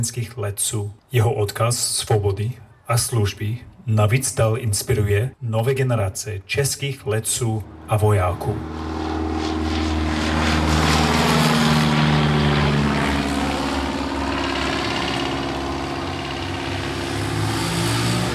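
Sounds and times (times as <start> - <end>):
speech: 0.0 - 9.0
propeller plane flying overhead: 7.2 - 18.3.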